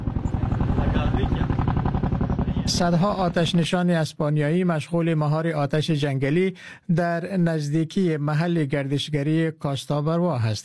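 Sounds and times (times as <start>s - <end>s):
helicopter rotor over a wildfire: 0.0s - 3.6s
low engine drone: 0.0s - 3.7s
speech: 2.7s - 10.6s.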